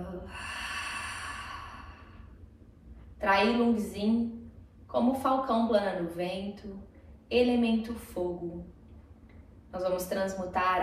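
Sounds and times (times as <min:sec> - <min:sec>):
breathing out: 0:00.3 - 0:02.4
speech: 0:03.2 - 0:08.8, 0:09.7 - 0:10.8.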